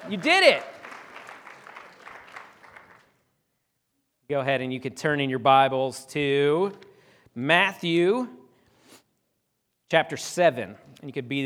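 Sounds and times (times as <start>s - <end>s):
speech: 0.0s - 0.8s, 4.3s - 8.4s, 9.9s - 11.4s
round of applause: 0.0s - 3.2s.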